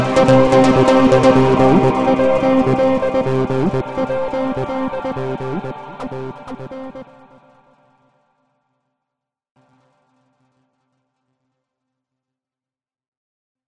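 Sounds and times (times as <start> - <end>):
electronic chip noise: 0.0 - 7.1.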